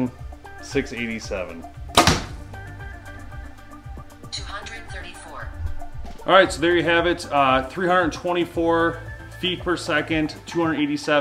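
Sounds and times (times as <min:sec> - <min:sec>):
speech: 0:00.0 - 0:01.8, 0:06.2 - 0:11.1
heavy arrow shot from bow hitting target: 0:01.9 - 0:02.4.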